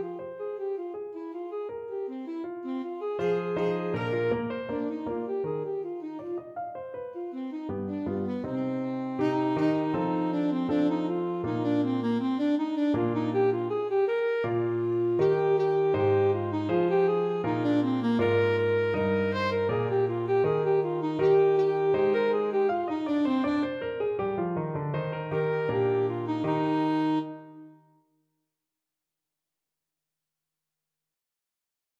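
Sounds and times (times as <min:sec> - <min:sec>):
saxophone playing a baroque gavotte: 0:00.0 - 0:24.2, 0:25.1 - 0:27.9.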